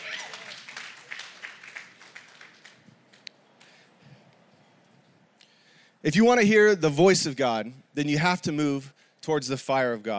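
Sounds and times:
audience clapping: 0.0s - 3.9s
speech: 6.0s - 10.1s.

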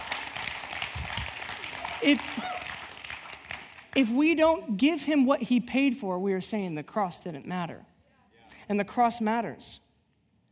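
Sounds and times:
audience clapping: 0.0s - 4.8s
speech: 2.0s - 2.5s, 4.0s - 7.9s, 8.7s - 9.8s.

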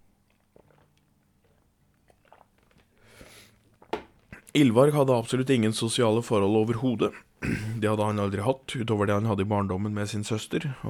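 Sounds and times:
person sipping a drink: 0.2s - 4.6s
swallow: 0.5s - 4.5s
speech: 4.5s - 10.8s.

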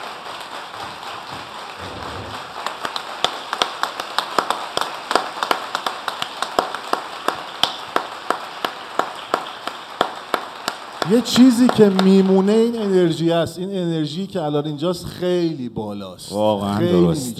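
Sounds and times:
audience applause: 0.0s - 13.3s
speech: 11.1s - 17.3s.

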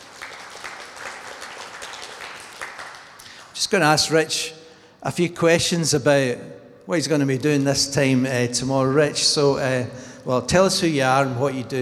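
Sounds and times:
crowd clapping: 0.0s - 3.6s
speech: 3.6s - 11.7s.

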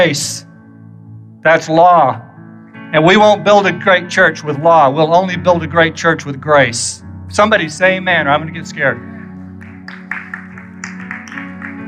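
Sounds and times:
speech: 0.0s - 0.5s, 1.4s - 2.3s, 2.9s - 9.1s
golf clap, light polite applause: 9.6s - 11.8s.

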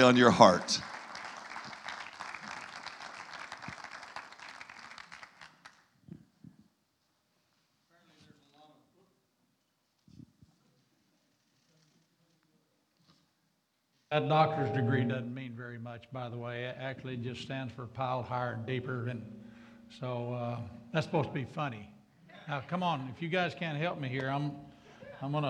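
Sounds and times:
speech: 0.0s - 0.9s, 14.1s - 21.9s, 22.5s - 25.4s
audience applause welcoming a guest speaker at a church gathering: 0.0s - 5.8s.

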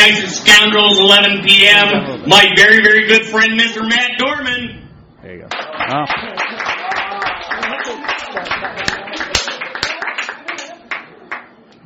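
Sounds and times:
speech: 0.6s - 6.9s, 7.6s - 9.2s
hand clapping: 5.5s - 11.5s.

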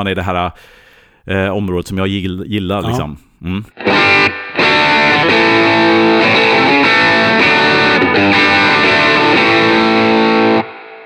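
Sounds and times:
speech: 0.0s - 6.2s, 8.1s - 9.8s
electric guitar through overdrive pedal playing distorted chords: 3.8s - 11.0s.

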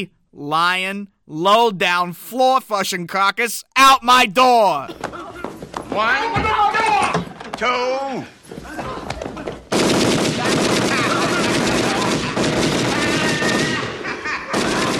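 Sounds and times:
speech: 0.0s - 5.3s, 6.0s - 6.9s, 7.6s - 8.4s
laughter: 4.8s - 5.8s, 8.6s - 9.7s, 10.4s - 14.9s
gunfire from a loud TV: 9.7s - 14.9s.

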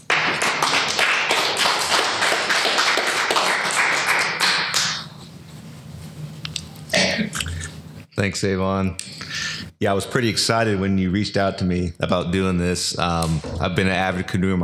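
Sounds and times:
audience applause welcoming an environmental reporter: 0.0s - 8.1s
speech: 8.2s - 9.2s, 9.8s - 14.6s.

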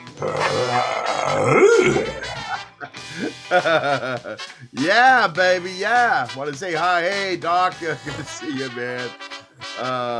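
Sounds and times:
man growling like a cartoon dog: 0.0s - 2.6s
speech: 0.2s - 2.2s, 3.2s - 10.1s
laughter: 1.9s - 4.4s.

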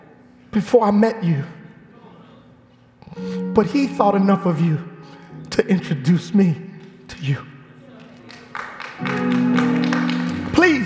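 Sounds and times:
speech: 0.6s - 1.6s, 3.6s - 4.9s, 5.6s - 7.5s, 9.0s - 9.6s
audience clapping: 6.7s - 10.8s.

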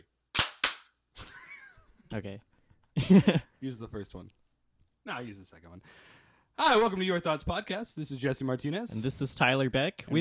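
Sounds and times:
two people clapping hands together once: 0.4s - 0.9s
speech: 2.1s - 4.4s, 5.0s - 10.1s
laughter: 3.0s - 3.5s.

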